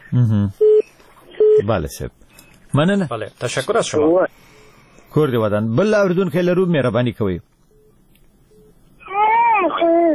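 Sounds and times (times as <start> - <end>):
speech: 0.1 - 0.7, 1.6 - 7.5
baby crying on a caller's phone line to a radio show: 9.0 - 10.1.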